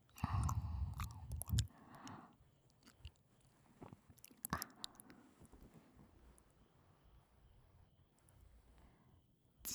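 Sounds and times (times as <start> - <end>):
ASMR ear licking sounds: 0.1 - 5.6.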